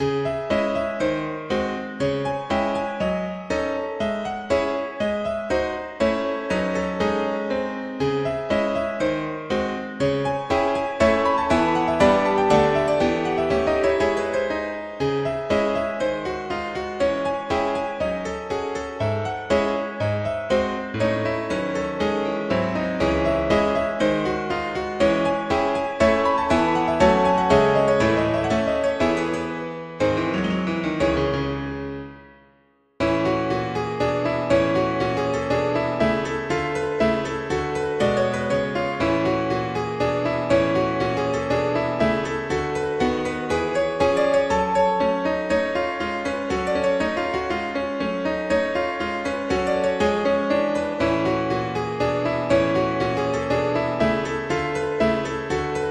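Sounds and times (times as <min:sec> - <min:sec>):
classical nocturne: 0:00.0 - 0:32.4, 0:33.0 - 0:55.8.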